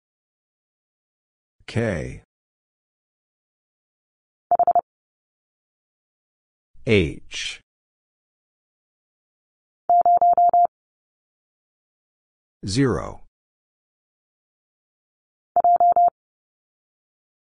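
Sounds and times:
morse code single character at 30 wpm: 4.5s - 4.8s, 9.9s - 10.7s, 15.6s - 16.1s.

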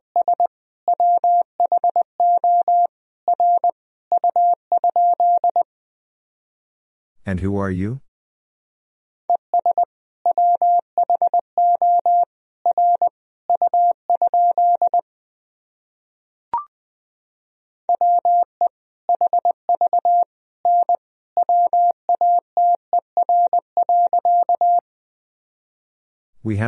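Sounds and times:
Morse code sentences sent at 20 wpm: 0.2s - 5.7s, 9.6s - 15.0s, 17.9s - 18.5s, 19.1s - 24.8s
speech: 7.3s - 8.1s, 26.5s - 26.6s.

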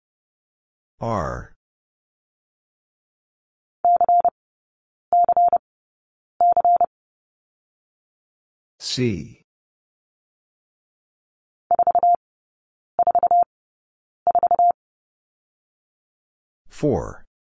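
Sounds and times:
morse code letter W tones at 30 wpm: 3.9s - 4.3s, 5.2s - 5.6s, 6.4s - 6.9s, 11.7s - 12.2s, 13.0s - 13.5s, 14.3s - 14.8s.

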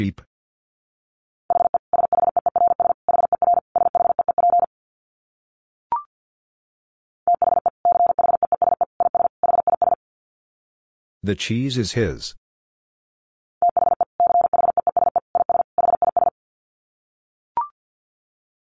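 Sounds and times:
speech: 0.0s - 0.3s, 11.2s - 12.4s
Morse code tones at 50 wpm: 1.5s - 4.7s, 7.3s - 10.0s, 13.6s - 16.3s.

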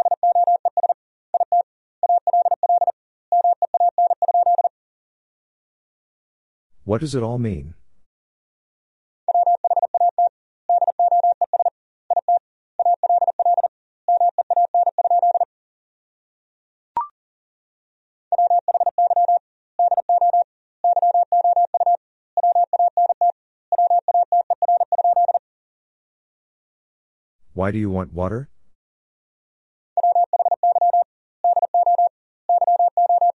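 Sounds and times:
Morse code beeps at 40 words per minute: 0.0s - 4.7s, 9.3s - 15.5s, 18.3s - 25.4s, 30.0s - 33.3s
speech: 6.9s - 7.8s, 27.6s - 28.5s.

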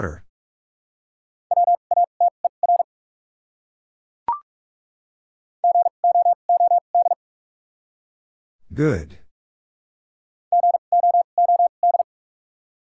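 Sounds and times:
speech: 0.0s - 0.2s, 8.8s - 9.2s
Morse code tones at 45 words per minute: 1.5s - 2.9s, 5.6s - 7.2s, 10.5s - 12.1s.

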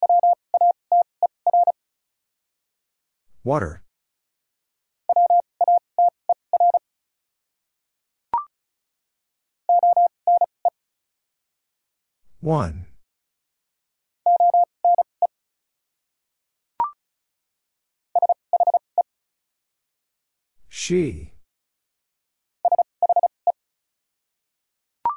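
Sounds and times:
Morse code tones at 35 words per minute: 0.0s - 1.8s, 5.1s - 6.8s, 9.7s - 10.5s, 14.3s - 15.1s, 18.2s - 18.8s, 22.7s - 23.3s
speech: 3.4s - 3.8s, 12.4s - 12.9s, 20.8s - 21.3s.

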